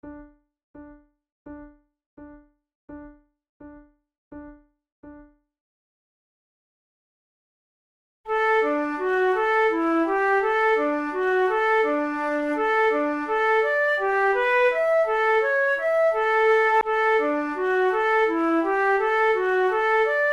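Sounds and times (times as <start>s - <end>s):
flute duet: 8.3s - 20.3s.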